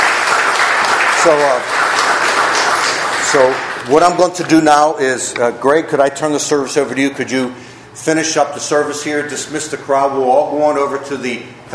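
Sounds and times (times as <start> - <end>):
audience applause: 0.0 - 4.2
speech: 1.2 - 1.8, 3.2 - 11.7.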